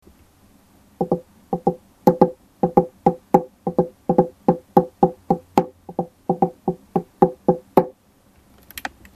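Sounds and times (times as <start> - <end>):
kotsuzumi hand drum: 1.0 - 7.9.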